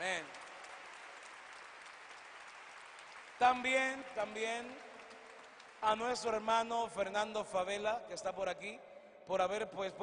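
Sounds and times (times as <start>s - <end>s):
audience applause: 0.0s - 6.4s
speech: 3.4s - 4.9s, 5.8s - 10.0s.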